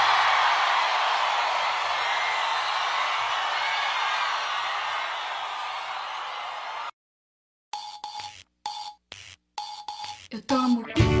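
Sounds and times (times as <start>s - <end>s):
audience applause: 0.0s - 6.9s
speech: 10.4s - 11.0s.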